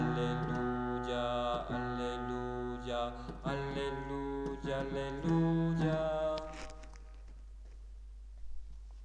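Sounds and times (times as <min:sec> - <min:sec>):
soprano singing: 0:00.0 - 0:06.9.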